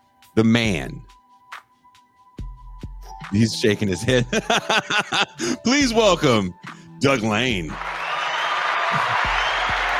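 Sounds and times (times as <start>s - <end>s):
speech: 0.3s - 1.2s, 3.3s - 7.9s, 8.9s - 9.2s
laughter: 4.0s - 5.6s
audience applause: 7.7s - 9.9s.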